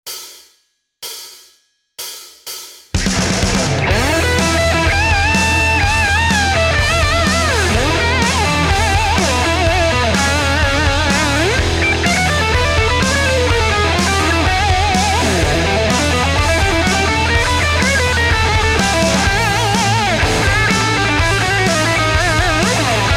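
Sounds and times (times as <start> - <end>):
blues guitar techniques: 3.2 - 23.1.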